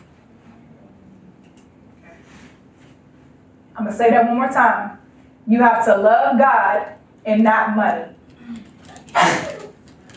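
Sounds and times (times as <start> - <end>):
speech: 3.8 - 8.6
sneeze: 9.1 - 9.7.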